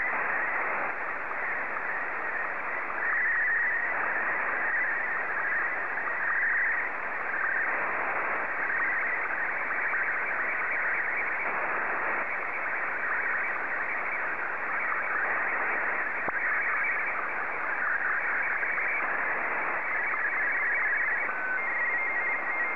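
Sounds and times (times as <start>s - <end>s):
SSTV signal in Martin 2 mode: 0.0s - 22.7s.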